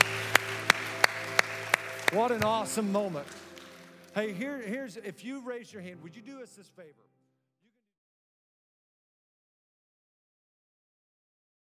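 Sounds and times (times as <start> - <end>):
audience clapping: 0.0 - 4.9
speech: 2.1 - 3.4, 4.2 - 7.1.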